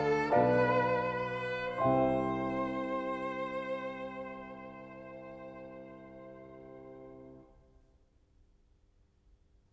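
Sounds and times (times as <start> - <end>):
chorale for violin and piano: 0.0 - 7.6.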